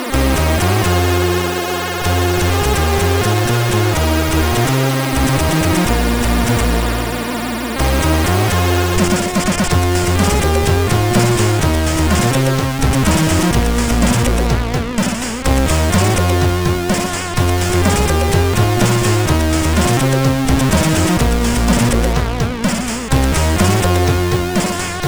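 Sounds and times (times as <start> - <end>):
MOS6581 SID chip synth sound: 0.1 - 25.0.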